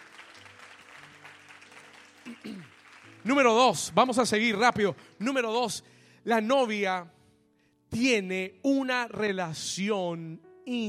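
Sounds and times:
audience applause: 0.0s - 3.7s
speech: 3.2s - 7.2s, 7.9s - 10.8s.

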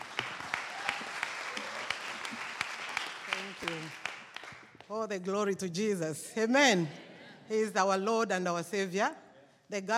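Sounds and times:
audience applause: 0.0s - 4.6s
speech: 4.9s - 9.9s.

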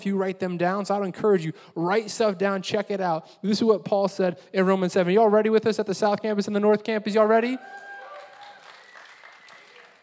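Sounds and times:
speech: 0.0s - 7.8s
audience clapping: 7.6s - 10.0s.

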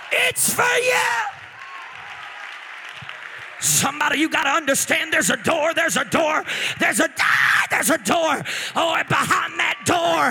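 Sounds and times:
audience clapping: 0.0s - 6.6s
speech: 0.2s - 1.4s, 3.6s - 10.2s.

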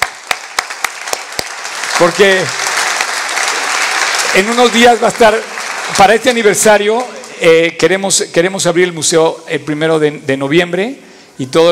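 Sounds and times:
audience applause: 0.0s - 7.8s
speech: 2.0s - 2.7s, 4.4s - 11.6s.

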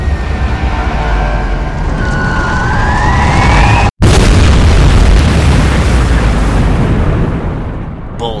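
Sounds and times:
1,000-pound bomb whistling down onto a warship: 1.0s - 3.9s
1,000-pound bomb exploding on a warship: 3.0s - 8.3s.

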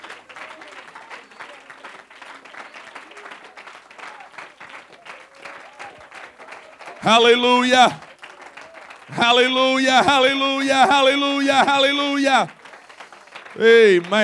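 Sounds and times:
audience clapping hands: 0.0s - 14.2s
laughter: 7.0s - 8.0s, 9.1s - 12.5s
speech: 7.0s - 8.0s, 9.1s - 12.6s, 13.6s - 14.2s.

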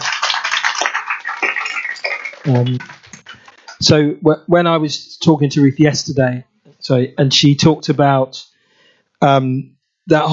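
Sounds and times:
audience applause: 0.0s - 3.8s
speech: 2.4s - 3.0s, 3.8s - 8.5s, 9.2s - 10.3s.

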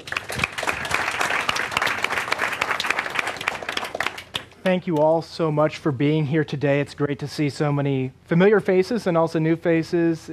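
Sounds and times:
audience applauding to welcome a speaker at an arts event: 0.0s - 4.5s
speech: 4.7s - 10.3s.

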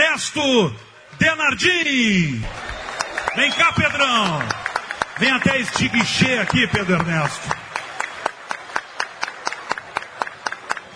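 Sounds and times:
speech: 0.2s - 2.7s, 3.4s - 7.6s
applause: 2.4s - 10.9s.

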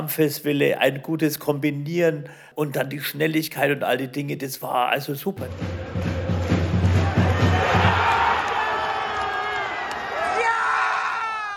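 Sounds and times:
speech: 0.0s - 6.1s
crowd cheering after a goal: 5.5s - 11.5s
people shouting and screaming: 6.2s - 11.5s.

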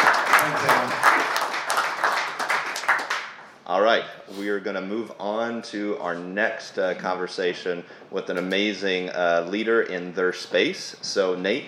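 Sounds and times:
audience applause: 0.0s - 3.4s
speech: 3.9s - 11.6s.

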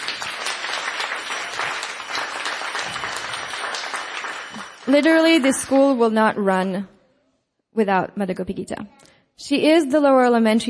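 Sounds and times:
round of applause from a crowd: 0.0s - 5.9s
speech: 4.9s - 7.0s, 7.8s - 10.6s.

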